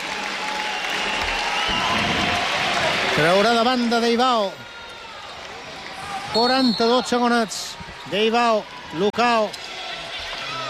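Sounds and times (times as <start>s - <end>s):
futsal crowd clapping for a three-time European champion player: 0.0s - 6.3s
speech: 3.2s - 4.6s, 6.3s - 9.6s.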